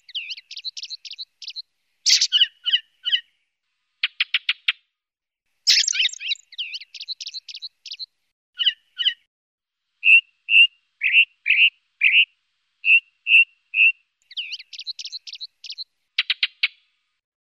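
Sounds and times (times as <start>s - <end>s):
ring ouzel calls: 0.0s - 3.4s, 5.7s - 9.3s, 10.0s - 16.8s.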